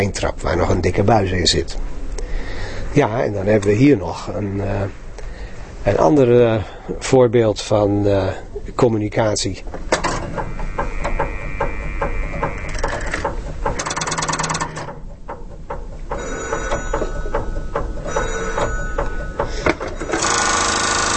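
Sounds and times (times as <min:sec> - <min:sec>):
speech: 0:00.0 - 0:02.0, 0:02.9 - 0:05.0, 0:05.8 - 0:10.0
telephone exchange step selectors and relays clicking: 0:09.7 - 0:21.1.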